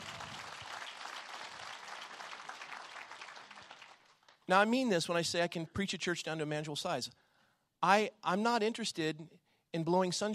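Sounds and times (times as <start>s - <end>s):
audience applause: 0.0s - 4.3s
speech: 4.5s - 7.2s, 7.8s - 10.3s.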